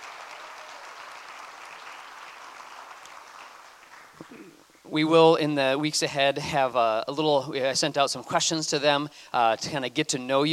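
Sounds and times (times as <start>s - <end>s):
audience applause: 0.0s - 4.8s
speech: 4.2s - 10.5s.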